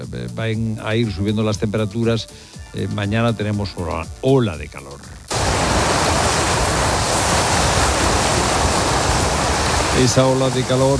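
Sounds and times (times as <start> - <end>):
speech: 0.1 - 5.2, 10.0 - 10.9
ocean waves breaking on black volcanic rock of Lanzarote: 5.3 - 10.9.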